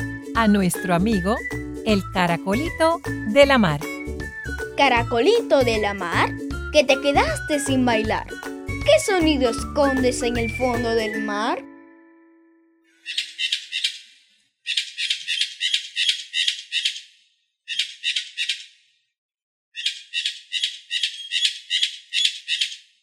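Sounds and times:
speech: 0.4s - 3.9s, 4.8s - 11.7s
Hispaniolan parrot calls: 13.0s - 14.1s, 14.7s - 17.1s, 19.8s - 22.9s.

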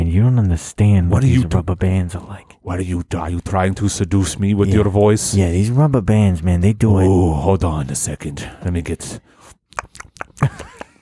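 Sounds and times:
speech: 0.1s - 10.7s
chewing sticky caramel: 1.2s - 5.8s, 9.4s - 11.0s.

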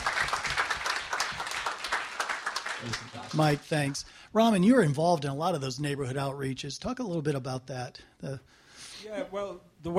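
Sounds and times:
crowd clapping: 0.0s - 4.0s
speech: 2.8s - 9.9s.

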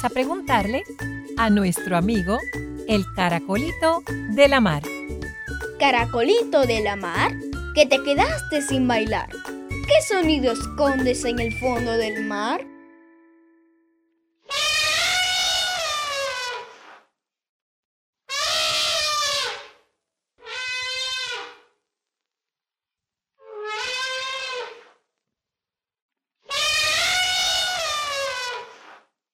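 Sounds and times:
speech: 0.0s - 5.0s, 5.8s - 12.7s
elephant trumpeting: 14.5s - 16.8s, 18.3s - 19.8s, 20.4s - 21.6s, 23.5s - 24.9s, 26.5s - 28.9s.

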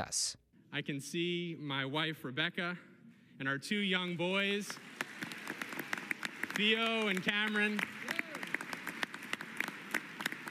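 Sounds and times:
speech: 0.0s - 5.1s, 6.6s - 8.0s
child clapping: 5.1s - 10.5s.

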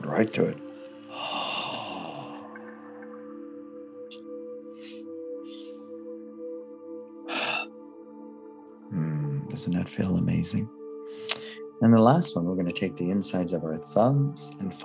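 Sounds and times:
speech: 0.2s - 0.6s, 9.6s - 10.8s, 11.8s - 14.8s
breathing during a jaw massage exercise: 0.8s - 2.4s, 4.7s - 6.1s, 7.3s - 7.7s, 11.0s - 11.8s
airy exhale during a jaw massage exercise: 1.1s - 2.8s, 4.7s - 6.1s, 7.3s - 7.7s, 11.0s - 11.6s.

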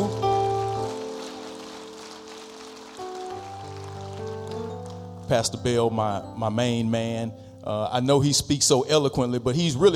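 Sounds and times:
audience applause: 0.0s - 5.0s
speech: 5.3s - 9.9s.

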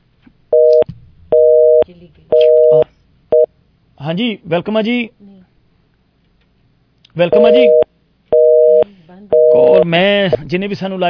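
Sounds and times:
telephone line tone as a live call is connected: 0.6s - 3.5s, 7.3s - 9.9s
speech: 1.9s - 2.8s, 4.0s - 5.3s, 7.2s - 7.8s, 9.1s - 11.0s.

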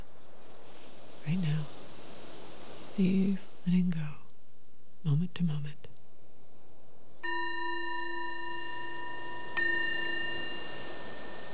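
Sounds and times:
speech: 1.2s - 1.8s, 3.0s - 4.2s, 5.0s - 5.9s
meditation bell: 7.2s - 11.5s.

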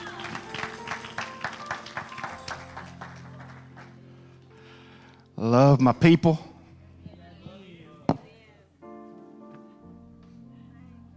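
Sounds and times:
audience clapping hands in praise: 0.0s - 4.2s
speech: 5.4s - 6.5s.

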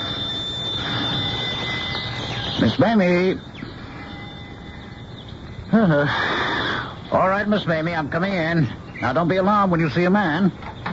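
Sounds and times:
rough rattling buzz of old-fashioned doorbell: 0.0s - 8.2s
old-fashioned doorbell ringing: 0.0s - 10.9s
speech: 2.6s - 3.5s, 5.7s - 6.4s, 7.1s - 10.7s.

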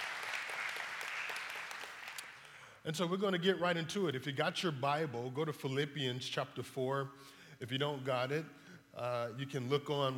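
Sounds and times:
church congregation applauding: 0.0s - 2.7s
speech: 2.8s - 10.1s.

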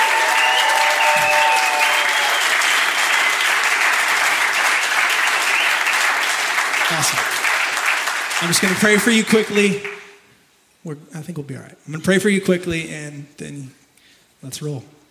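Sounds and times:
faint cheering and voices: 0.0s - 3.5s
audience applause: 0.0s - 10.1s
speech: 8.4s - 10.0s, 10.8s - 13.8s, 14.4s - 15.0s.

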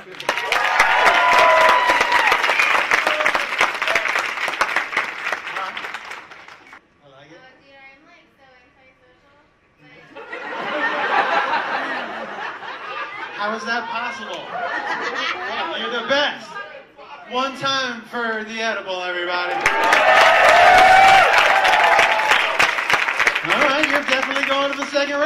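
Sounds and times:
audience cheering: 0.0s - 6.1s, 19.4s - 25.0s
laughter: 10.1s - 16.4s
speech: 13.6s - 16.5s, 17.3s - 21.5s, 23.4s - 25.2s.

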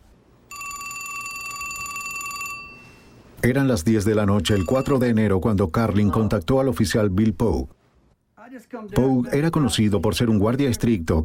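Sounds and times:
telephone bell ringing with metallic trill: 0.5s - 3.2s, 4.4s - 5.2s
speech: 3.4s - 7.8s, 8.6s - 11.2s.

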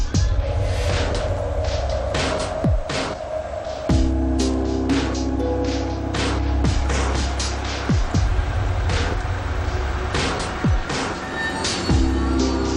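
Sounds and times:
car approaching: 0.1s - 12.7s.

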